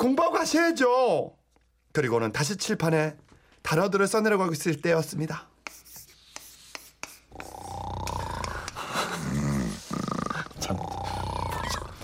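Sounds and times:
speech: 0:00.0 - 0:01.4, 0:02.0 - 0:05.5
old woman snoring while asleep face down on a desk: 0:07.3 - 0:12.0.

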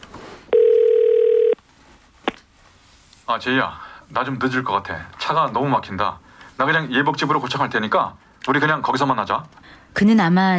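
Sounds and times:
telephone ringback tone: 0:00.5 - 0:01.6
speech: 0:03.3 - 0:10.5.

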